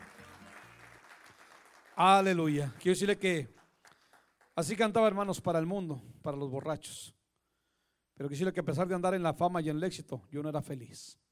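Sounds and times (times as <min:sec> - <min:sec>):
audience clapping: 0:00.0 - 0:05.2
speech: 0:02.0 - 0:03.6, 0:04.6 - 0:07.2, 0:08.2 - 0:11.2.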